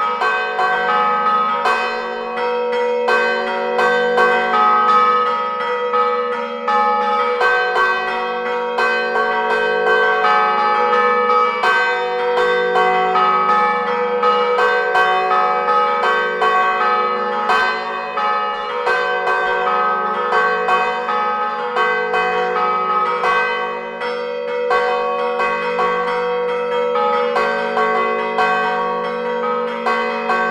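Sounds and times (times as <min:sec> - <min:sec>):
church bells ringing at Rezzo Sanctuary in Imperia Liguria: 0:00.0 - 0:30.5.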